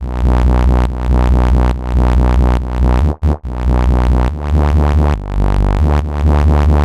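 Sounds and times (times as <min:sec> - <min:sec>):
dubstep bassline: 0:00.0 - 0:06.8.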